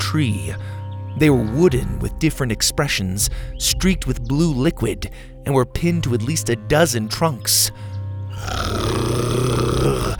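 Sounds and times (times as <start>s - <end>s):
speech: 0.1s - 9.6s
creature growling: 8.3s - 10.1s.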